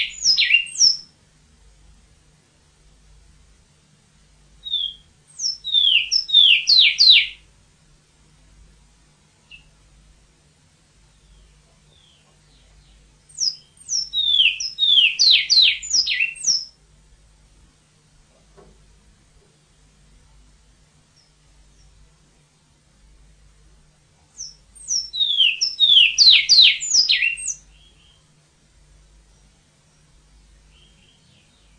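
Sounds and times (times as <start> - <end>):
Surinamese twa twa songbird calling: 0.0 - 1.2, 4.6 - 7.5, 9.4 - 9.8, 11.1 - 16.8, 21.1 - 22.0, 24.3 - 28.4, 29.2 - 31.7.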